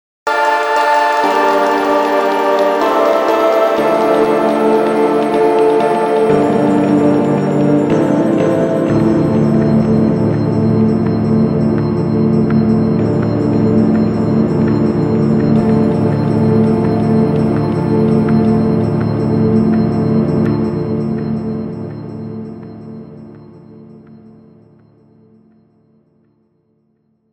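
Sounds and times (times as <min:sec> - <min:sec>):
advanced synth pad: 0:00.3 - 0:23.4.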